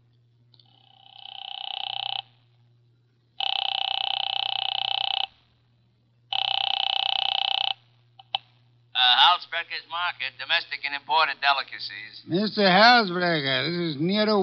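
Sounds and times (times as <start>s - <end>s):
steady low hum: 0.0s - 14.4s
telephone ringing on the line after dialing: 0.7s - 2.4s, 3.4s - 5.5s, 6.3s - 7.8s
speech: 9.4s - 14.4s.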